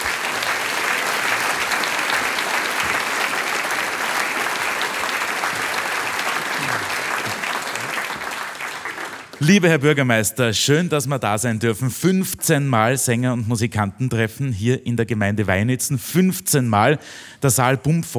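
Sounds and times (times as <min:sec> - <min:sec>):
audience applause: 0:00.0 - 0:09.8
speech: 0:09.4 - 0:18.1.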